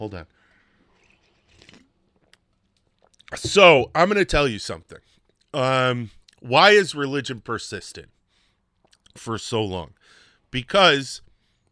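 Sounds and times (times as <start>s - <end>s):
speech: 0.0s - 0.5s, 3.3s - 8.2s, 9.2s - 11.2s
person sipping coffee: 0.6s - 3.4s.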